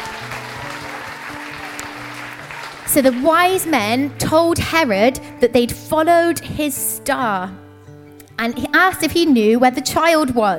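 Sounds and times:
audience round of applause: 0:00.0 - 0:04.0
speech: 0:02.9 - 0:07.6, 0:08.4 - 0:10.5.

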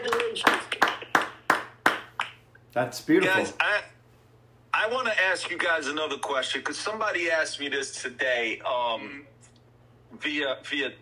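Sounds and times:
round of applause: 0:00.0 - 0:02.4
speech: 0:02.8 - 0:03.9, 0:04.9 - 0:09.4, 0:10.2 - 0:11.0.

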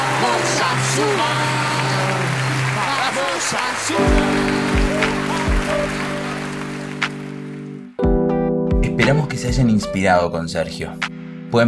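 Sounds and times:
audience applause and ovation: 0:00.0 - 0:07.8
speech: 0:03.4 - 0:04.5, 0:09.0 - 0:11.6.

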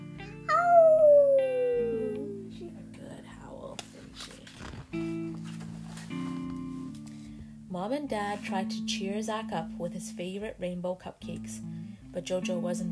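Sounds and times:
voice imitating a dog howling: 0:00.2 - 0:02.6
speech: 0:07.8 - 0:12.8.

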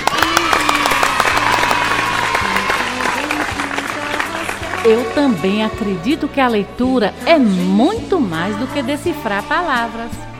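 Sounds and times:
applause: 0:00.0 - 0:05.2
speech: 0:04.8 - 0:10.3.

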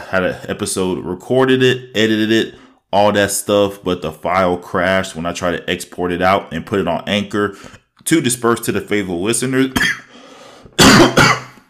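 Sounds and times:
speech: 0:00.1 - 0:10.1
person clearing throat: 0:09.7 - 0:10.1, 0:10.7 - 0:11.6
person coughing: 0:09.7 - 0:10.1, 0:10.7 - 0:11.6.

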